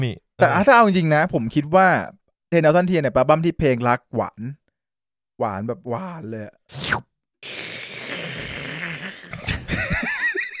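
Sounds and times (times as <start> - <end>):
speech: 0.0 - 4.6, 5.4 - 7.6
person slurping instant egg noodles: 6.7 - 9.5
laughter: 9.4 - 10.5.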